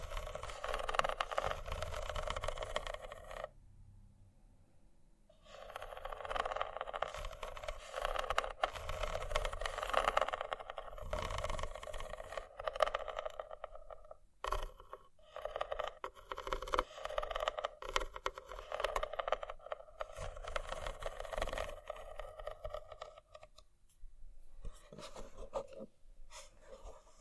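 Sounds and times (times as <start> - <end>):
scratching: 0.0 - 3.5, 5.3 - 23.7
faint low rumble: 3.5 - 5.3.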